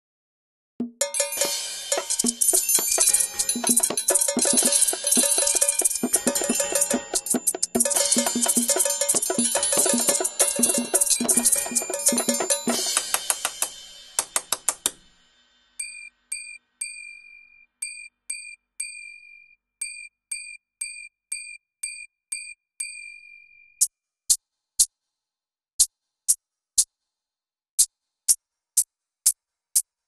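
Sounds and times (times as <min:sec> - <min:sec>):
musical instruments playing: 0:01.0 - 0:14.8.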